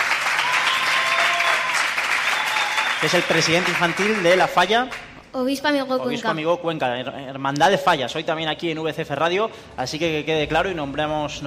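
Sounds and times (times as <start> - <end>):
audience applause: 0.0 - 5.2
speech: 3.0 - 11.4.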